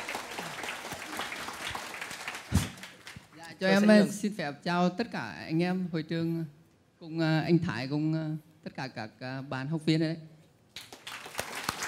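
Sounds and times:
audience applause: 0:00.0 - 0:03.4, 0:10.8 - 0:11.8
speech: 0:03.6 - 0:10.3.

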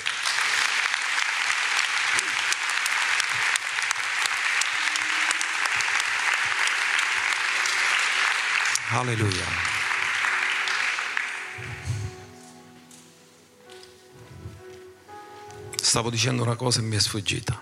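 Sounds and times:
applause: 0:00.0 - 0:12.1
speech: 0:08.9 - 0:09.8, 0:15.9 - 0:17.6.

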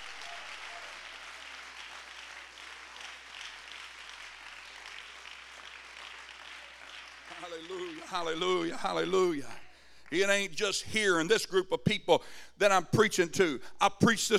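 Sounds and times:
audience hand clapping: 0:00.0 - 0:08.7
speech: 0:07.6 - 0:14.3.

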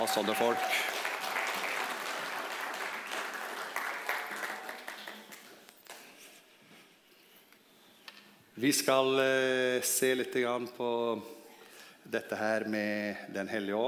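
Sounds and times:
crowd applause: 0:00.0 - 0:06.0
speech: 0:00.1 - 0:01.0, 0:08.6 - 0:11.4, 0:12.1 - 0:13.8.

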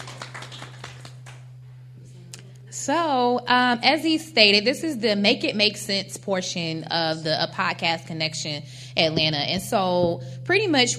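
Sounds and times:
audience applause: 0:00.0 - 0:01.4
speech: 0:02.7 - 0:10.9.

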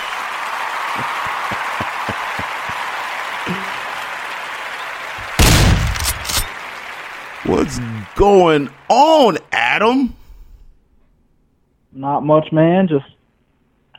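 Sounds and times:
round of applause: 0:00.0 - 0:09.9
speech: 0:01.0 - 0:01.2, 0:07.5 - 0:10.2, 0:12.0 - 0:13.2.

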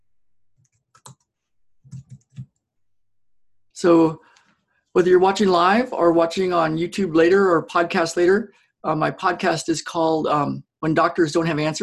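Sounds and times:
typing on a computer keyboard: 0:00.6 - 0:01.3, 0:01.9 - 0:02.6
speech: 0:03.8 - 0:04.2, 0:05.0 - 0:11.8.

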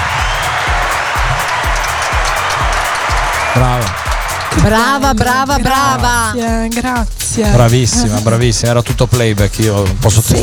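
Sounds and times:
audience applause: 0:00.0 - 0:06.4
speech: 0:04.6 - 0:10.4.

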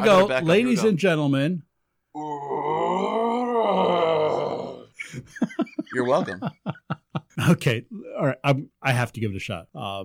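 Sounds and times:
speech: 0:00.0 - 0:02.5, 0:05.1 - 0:10.0
person imitating a Sasquatch call: 0:02.2 - 0:04.9
laughter: 0:05.0 - 0:07.5.

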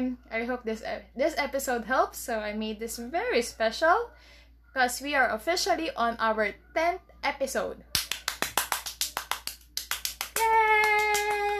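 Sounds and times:
speech: 0:00.0 - 0:07.9
one person clapping hands: 0:08.0 - 0:11.5.

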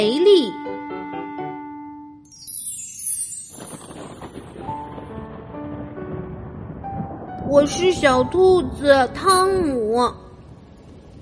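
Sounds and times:
soft musical notes: 0:00.0 - 0:09.2
steady rain: 0:03.6 - 0:09.2, 0:09.8 - 0:11.2
speech: 0:07.6 - 0:10.2.

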